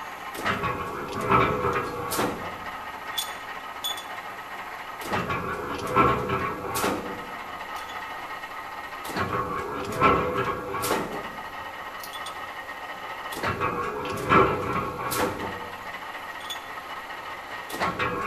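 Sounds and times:
engine bearing rolling: 0.0 - 18.2.

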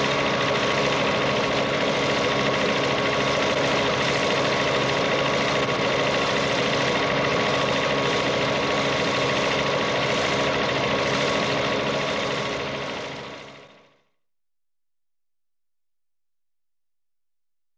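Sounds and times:
helicopter on helipad: 0.0 - 14.2.

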